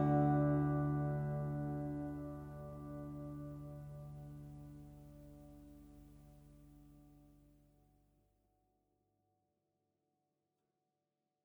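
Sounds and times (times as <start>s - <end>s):
guitar chords: 0.0s - 5.9s.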